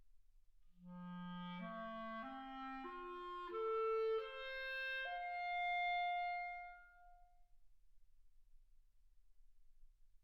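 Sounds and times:
clarinet: 0:00.8 - 0:07.3.

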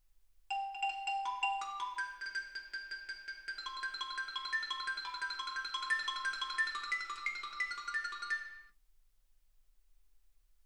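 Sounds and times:
xylophone: 0:00.5 - 0:08.7.

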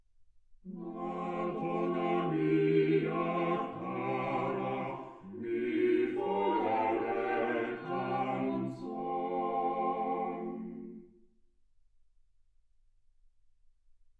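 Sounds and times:
quartet playing: 0:00.9 - 0:10.9.

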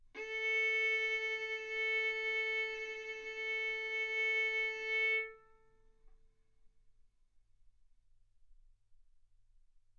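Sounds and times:
violin bowed mezzo-forte on the A string, A4 and B4: 0:00.2 - 0:05.6.

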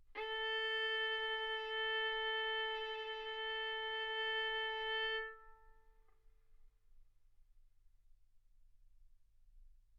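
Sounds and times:
violin bowed arco notes: 0:00.1 - 0:05.8.

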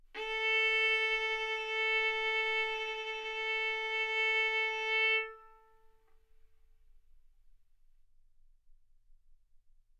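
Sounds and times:
violin bowed arco notes: 0:00.2 - 0:06.0.

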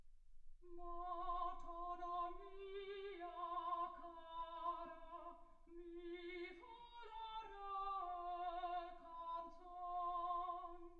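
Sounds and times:
soprano singing: 0:00.6 - 0:10.9.

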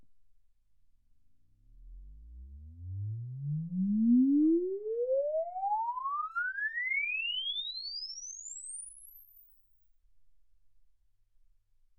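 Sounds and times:
exponential sine sweep from 10 Hz to 24 kHz: 0:02.9 - 0:09.6.

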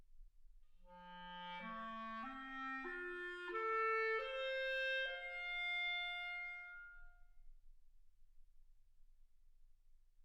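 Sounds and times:
clarinet: 0:00.9 - 0:07.2.

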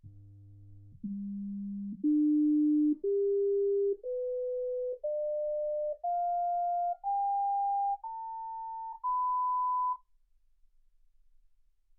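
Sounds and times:
sine tones: 0:01.0 - 0:10.0.

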